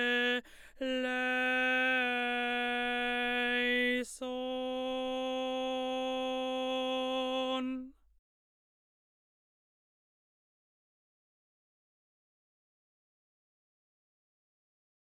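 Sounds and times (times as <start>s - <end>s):
choral motet: 0.0s - 7.9s.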